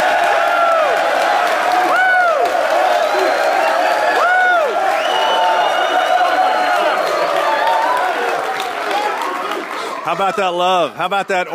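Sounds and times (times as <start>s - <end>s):
live studio audience roar at the University of Tennessee in Knoxville: 0.0s - 11.5s
clapping: 0.2s - 10.0s
high whoops and shouts: 1.7s - 9.3s
speech: 10.1s - 11.5s.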